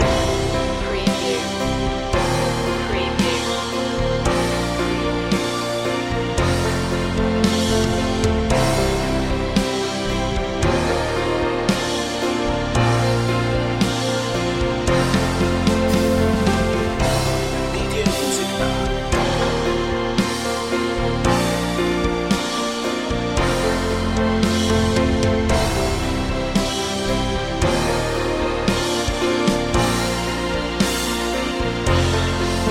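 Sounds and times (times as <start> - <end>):
dance music loop: 0.0 - 32.6.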